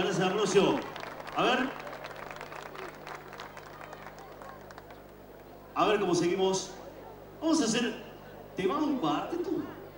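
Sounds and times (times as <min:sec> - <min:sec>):
speech: 0:00.0 - 0:01.8, 0:05.8 - 0:06.8, 0:07.4 - 0:08.0, 0:08.6 - 0:09.8
audience applause: 0:00.1 - 0:05.1.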